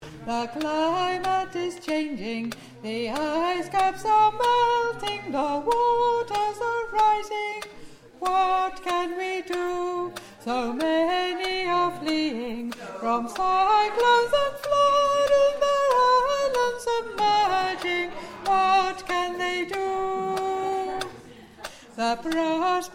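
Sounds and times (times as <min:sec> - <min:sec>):
tenor singing: 0:00.0 - 0:22.9.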